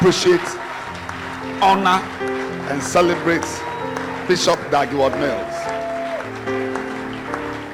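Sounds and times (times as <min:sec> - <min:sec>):
speech: 0:00.0 - 0:00.7, 0:01.6 - 0:03.7, 0:04.3 - 0:05.5
crowd clapping: 0:00.0 - 0:07.7.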